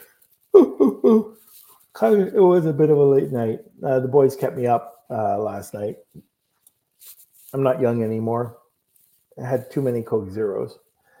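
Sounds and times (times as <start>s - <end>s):
speech: 0.5s - 6.3s, 7.5s - 8.6s, 9.4s - 10.8s
person yawning: 0.6s - 1.4s.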